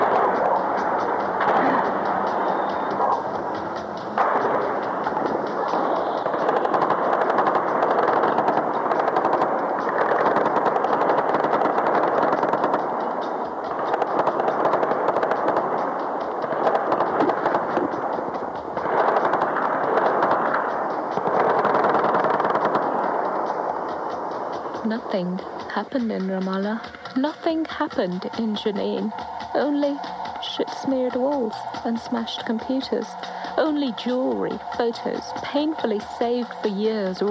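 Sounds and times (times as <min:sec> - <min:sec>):
machine-gun rattles: 0:00.0 - 0:24.8
gunfire during a gunfight: 0:00.0 - 0:32.8
speech: 0:25.2 - 0:30.2, 0:30.9 - 0:37.2.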